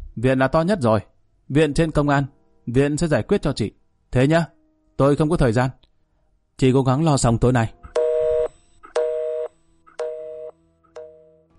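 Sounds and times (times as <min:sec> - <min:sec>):
speech: 0:00.2 - 0:05.8, 0:06.6 - 0:07.8
telephone busy tone after a call is hung up: 0:08.0 - 0:11.4.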